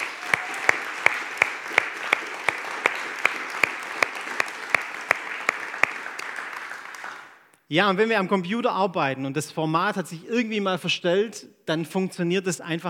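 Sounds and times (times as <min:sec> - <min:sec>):
audience applause: 0:00.0 - 0:07.5
speech: 0:07.7 - 0:12.8.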